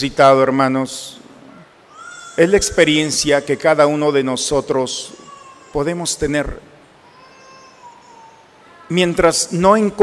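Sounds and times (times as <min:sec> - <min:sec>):
speech: 0:00.0 - 0:01.2, 0:02.4 - 0:06.8, 0:08.9 - 0:10.0
child crying: 0:01.9 - 0:02.5, 0:05.1 - 0:05.9, 0:07.0 - 0:08.9.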